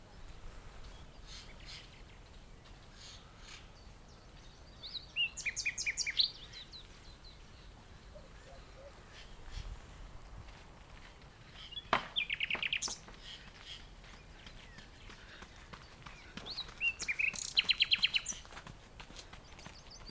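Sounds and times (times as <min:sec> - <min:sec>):
common nightingale song: 0:00.0 - 0:10.4, 0:11.0 - 0:20.0.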